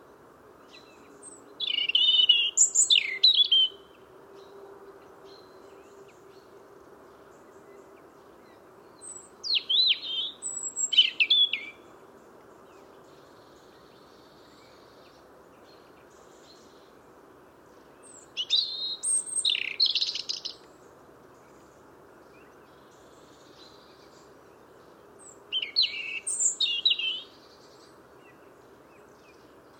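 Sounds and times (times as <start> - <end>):
European robin song of high phrases: 0.7 - 4.0, 9.0 - 11.8, 18.0 - 20.7, 25.2 - 28.4.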